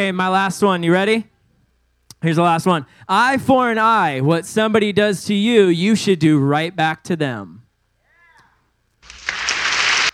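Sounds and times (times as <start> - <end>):
speech: 0.0 - 1.3, 2.2 - 7.6
applause sound effect played by DJ: 9.1 - 10.1.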